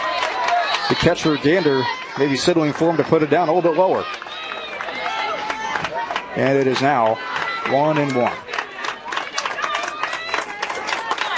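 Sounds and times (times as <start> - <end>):
ballpark crowd applause from the Warrior faithful: 0.0 - 11.3
speech: 0.9 - 4.2, 6.4 - 8.5.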